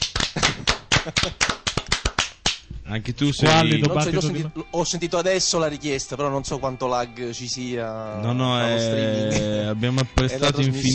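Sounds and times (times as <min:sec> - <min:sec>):
applause: 0:00.0 - 0:02.6
speech: 0:01.0 - 0:01.6, 0:02.9 - 0:10.9.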